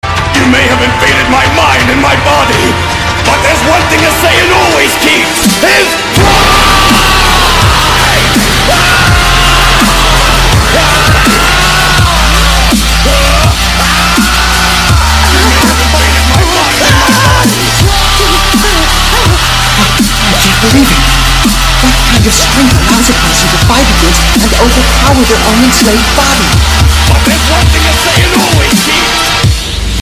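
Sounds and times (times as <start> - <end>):
dubstep music: 0.0 - 29.9.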